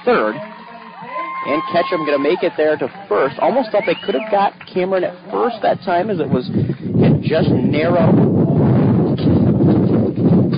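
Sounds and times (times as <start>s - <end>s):
speech: 0.0s - 8.4s
wind gusting across a microphone outdoors at a baseball game: 5.5s - 10.5s.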